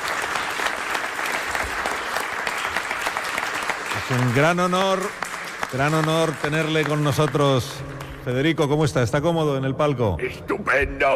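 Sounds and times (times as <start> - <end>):
audience applause: 0.0 - 8.8
speech: 4.1 - 11.1.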